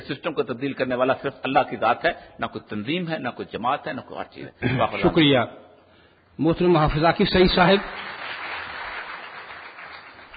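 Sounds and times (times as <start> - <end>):
speech: 0.1 - 5.6, 6.4 - 8.2
audience applause at a panel discussion on religion and politics: 7.8 - 10.3.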